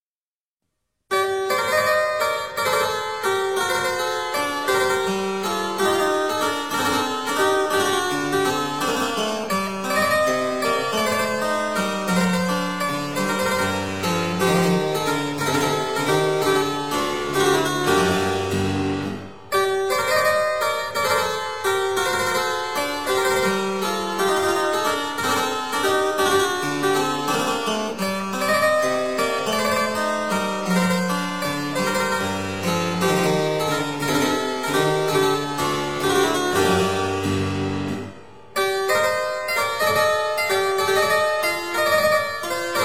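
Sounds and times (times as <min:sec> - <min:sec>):
harpsichord: 0:01.1 - 0:42.8.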